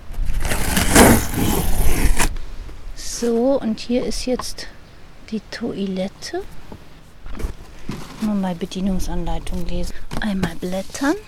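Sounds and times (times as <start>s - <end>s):
cardboard box being handled and turned over, scraping and rustling: 0.0s - 2.4s, 7.3s - 8.5s
speech: 3.2s - 6.6s, 8.2s - 11.2s.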